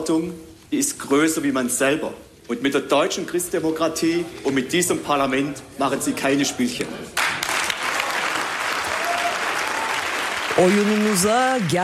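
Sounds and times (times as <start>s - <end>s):
speech: 0.0s - 7.2s, 10.6s - 11.8s
members of the Baden-Württemberg state parliament applauding after a speech: 7.2s - 11.8s.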